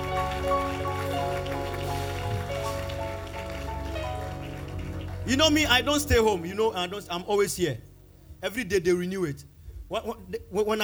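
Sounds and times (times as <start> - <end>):
people clapping: 0.0 - 6.4
speech: 5.3 - 10.8.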